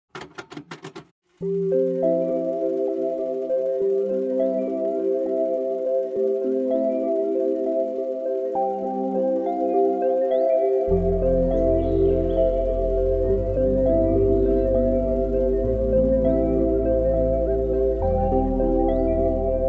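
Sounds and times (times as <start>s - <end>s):
calm ambient music: 1.4s - 19.6s.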